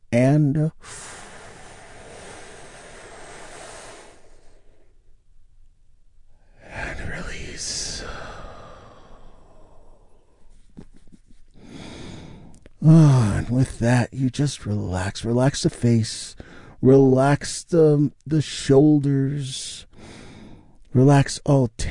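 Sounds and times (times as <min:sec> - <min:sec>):
speech: 0:00.1 - 0:01.1, 0:12.8 - 0:20.2, 0:20.9 - 0:21.8
big deep breath during a guided relaxation: 0:00.8 - 0:05.2, 0:06.3 - 0:10.6, 0:11.6 - 0:13.3, 0:16.4 - 0:16.8, 0:19.9 - 0:20.8.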